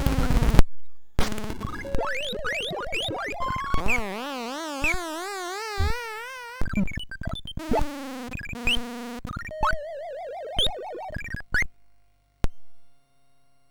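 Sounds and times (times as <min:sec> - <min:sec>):
MOS6581R3 chip tune: 0:01.2 - 0:11.7.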